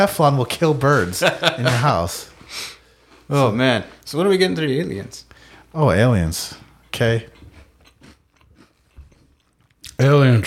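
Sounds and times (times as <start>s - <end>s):
speech: 0.0s - 2.7s, 3.3s - 7.3s, 10.0s - 10.4s
laughter: 0.9s - 2.3s
chewing and crunching food: 6.8s - 10.1s.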